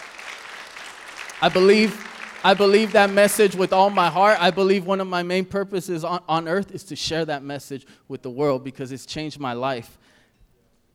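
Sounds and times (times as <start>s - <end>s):
audience applause: 0.0s - 4.8s
speech: 1.4s - 10.1s.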